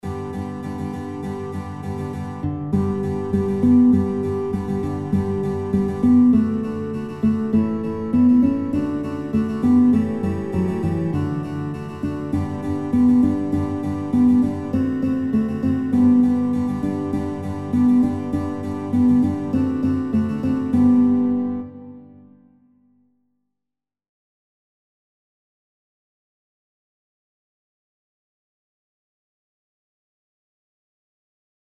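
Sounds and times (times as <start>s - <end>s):
guitar playing children's songs: 0.0s - 22.6s.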